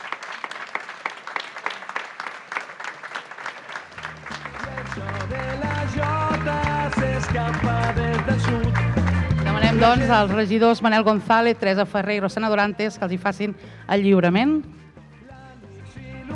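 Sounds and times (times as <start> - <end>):
audience applause: 0.0 - 10.4
speech: 9.8 - 14.8.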